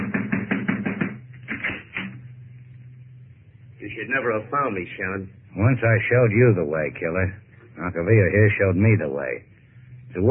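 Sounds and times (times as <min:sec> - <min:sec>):
knocking on a door: 0:00.0 - 0:01.2
low hum: 0:01.1 - 0:10.2
speech: 0:04.0 - 0:09.5.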